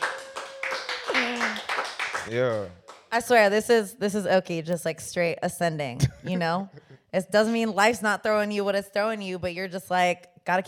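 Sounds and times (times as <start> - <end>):
hand claps: 0.0 - 3.1
speech: 2.3 - 10.6.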